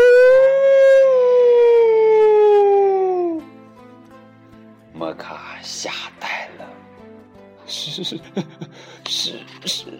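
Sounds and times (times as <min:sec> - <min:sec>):
wolf howling: 0:00.0 - 0:03.5
speech: 0:08.1 - 0:08.7.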